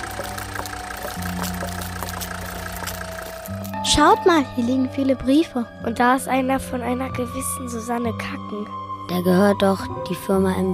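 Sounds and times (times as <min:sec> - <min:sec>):
car engine idling in garage: 0:00.0 - 0:03.7
speech: 0:03.8 - 0:10.7.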